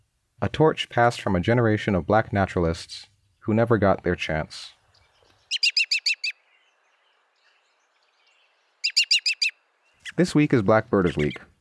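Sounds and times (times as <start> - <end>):
speech: 0.4 - 4.8, 10.2 - 11.5
American robin calling: 4.7 - 11.5.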